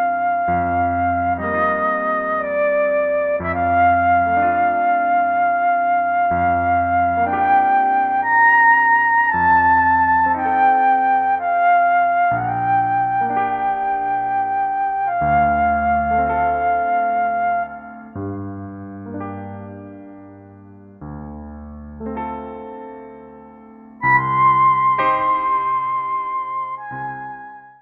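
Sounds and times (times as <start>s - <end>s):
flute: 0.0s - 19.2s, 24.0s - 27.8s
piano solo: 0.0s - 27.8s.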